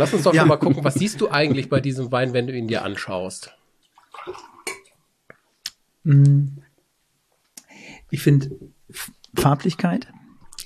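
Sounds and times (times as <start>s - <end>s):
speech: 0.0s - 4.5s, 6.0s - 6.6s, 8.1s - 10.2s
water pouring into glasses: 3.9s - 5.0s.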